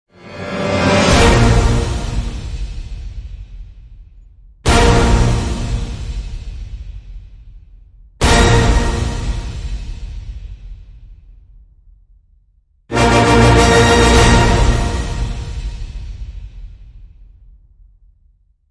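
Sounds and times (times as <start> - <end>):
orchestral end hits in A sharp: 0.2 - 2.8, 4.7 - 6.2, 8.2 - 9.9, 12.9 - 16.3.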